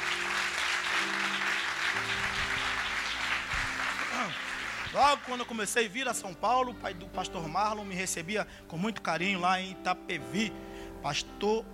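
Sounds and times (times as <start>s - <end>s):
audience applauding: 0.0s - 5.9s
speech: 4.3s - 11.7s.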